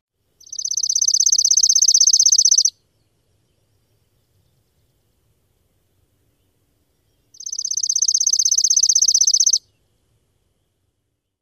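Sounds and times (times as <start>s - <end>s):
fast dry chipping sparrow trills: 0.4s - 2.8s, 7.4s - 9.7s.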